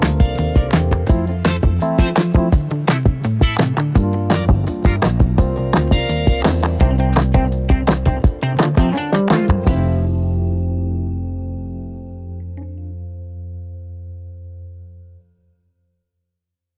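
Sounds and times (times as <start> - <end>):
easy groove music: 0.0 - 13.3.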